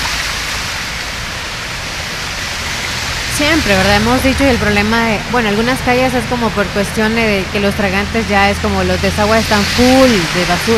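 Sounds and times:
rushing water of a flooded street in a storm: 0:00.0 - 0:10.7
speech: 0:03.4 - 0:10.7.

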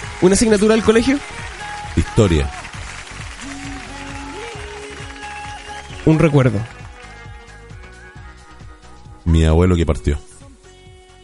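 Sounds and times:
applause: 0:00.0 - 0:08.3
speech: 0:00.2 - 0:01.4, 0:02.2 - 0:02.6, 0:06.1 - 0:06.8, 0:09.3 - 0:10.3.

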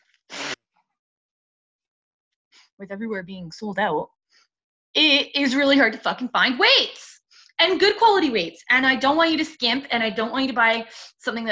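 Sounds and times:
nose blowing: 0:00.3 - 0:00.6
speech: 0:02.8 - 0:04.2, 0:05.0 - 0:11.4.

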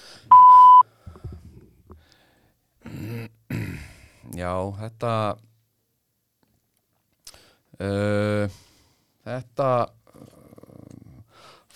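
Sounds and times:
answering machine beep tone: 0:00.3 - 0:00.8
speech: 0:04.4 - 0:05.5, 0:07.8 - 0:08.6, 0:09.3 - 0:10.0.

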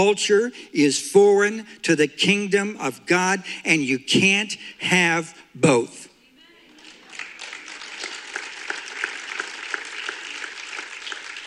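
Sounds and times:
speech: 0:00.0 - 0:06.1
audience clapping: 0:06.7 - 0:11.4.

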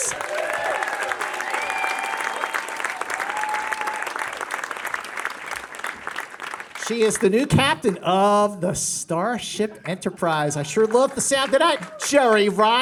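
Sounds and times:
audience applause at Star Trek Picard Q&A in an IMAX screening: 0:00.0 - 0:07.4, 0:10.8 - 0:12.8
audience whistles: 0:01.5 - 0:02.9
speech: 0:06.9 - 0:12.8.

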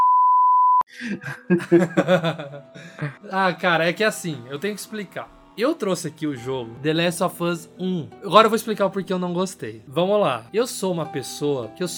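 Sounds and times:
high-pitched censor beep: 0:00.0 - 0:00.8
people laughing and giggling: 0:00.9 - 0:03.2
speech: 0:01.0 - 0:11.9.

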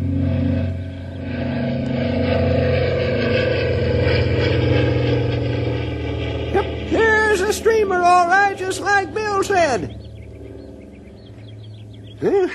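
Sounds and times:
signal propeller airplane engine droning: 0:00.0 - 0:12.5.

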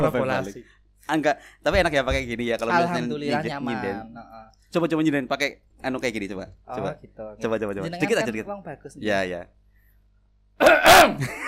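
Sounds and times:
speech: 0:00.0 - 0:09.6, 0:10.6 - 0:11.4
throat clearing: 0:10.6 - 0:11.2.

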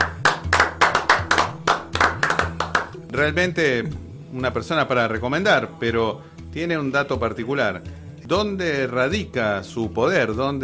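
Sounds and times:
applause: 0:00.0 - 0:03.1
speech: 0:03.2 - 0:10.6.

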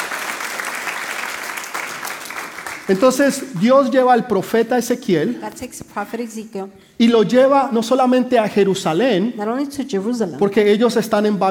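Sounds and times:
audience applauding: 0:00.0 - 0:03.8
speech: 0:02.9 - 0:11.4.

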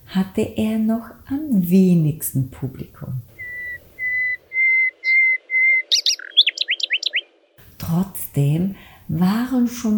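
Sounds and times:
speech: 0:00.2 - 0:03.3, 0:07.9 - 0:09.9
nightingale singing: 0:03.3 - 0:07.6.

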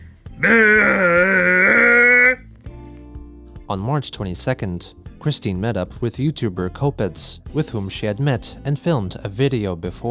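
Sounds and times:
speech: 0:00.4 - 0:00.8, 0:03.7 - 0:10.0
melodic burp: 0:00.4 - 0:02.4.

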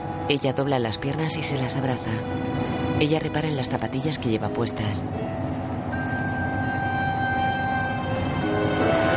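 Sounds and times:
bus driving: 0:00.0 - 0:09.1
speech: 0:00.3 - 0:05.6.

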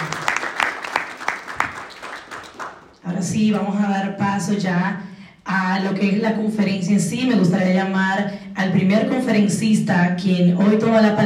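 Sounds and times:
crowd applauding the mayor at a conference event: 0:00.0 - 0:03.0
speech: 0:03.2 - 0:11.2.

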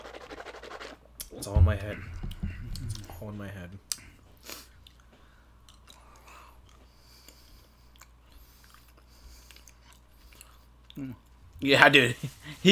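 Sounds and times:
low hum: 0:00.0 - 0:12.6
speech: 0:01.4 - 0:02.2, 0:03.2 - 0:03.9, 0:11.0 - 0:12.6
chewing a coconut-flavored candy: 0:05.6 - 0:11.4.

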